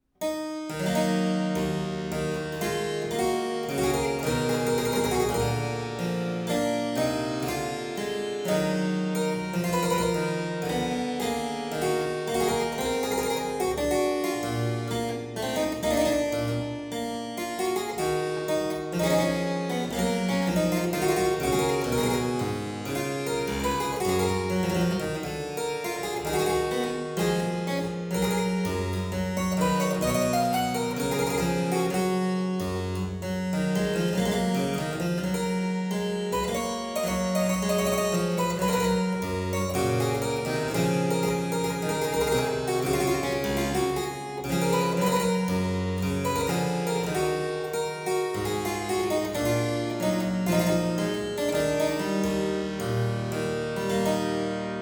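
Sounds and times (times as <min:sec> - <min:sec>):
E minor allemande on harpsichord: 0:00.0 - 0:54.7.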